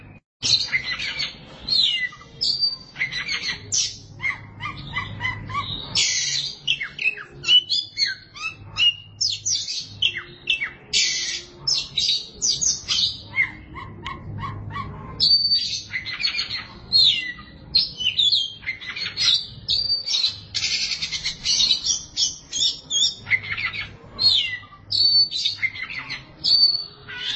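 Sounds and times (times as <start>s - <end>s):
Oriental magpie-robin singing whistles and trills: 0.0s - 13.7s, 15.2s - 27.3s.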